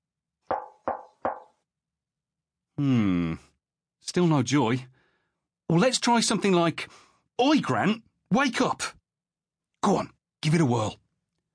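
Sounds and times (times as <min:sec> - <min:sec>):
firm knocks on a lamp: 0:00.5 - 0:01.5
speech: 0:02.8 - 0:05.0, 0:05.7 - 0:09.0, 0:09.8 - 0:11.0.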